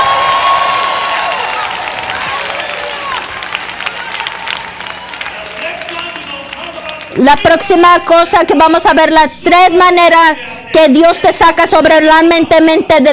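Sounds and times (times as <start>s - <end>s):
steady dense applause: 0.0s - 7.3s
crowd shouting and cheering: 0.0s - 7.6s
speech: 7.2s - 13.1s.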